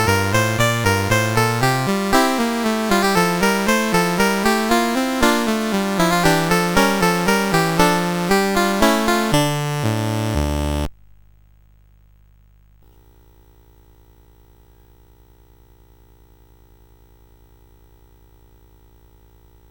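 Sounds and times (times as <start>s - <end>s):
minuet on a CSG8580R5 sound chip: 0.0s - 10.9s.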